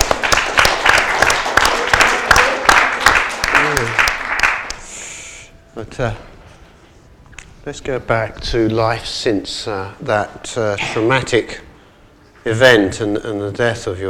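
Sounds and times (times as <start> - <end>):
audience applause: 0.0 - 4.8
speech: 5.8 - 6.3, 7.6 - 11.7, 12.4 - 14.0.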